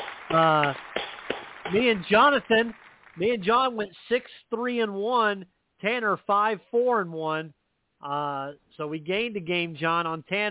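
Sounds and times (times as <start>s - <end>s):
crowd clapping: 0.0s - 3.8s
speech: 0.3s - 1.0s, 1.7s - 10.4s.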